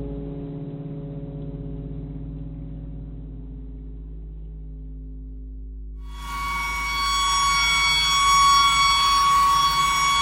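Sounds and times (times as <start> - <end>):
clarinet imitating a tornado siren: 6.1 - 10.2.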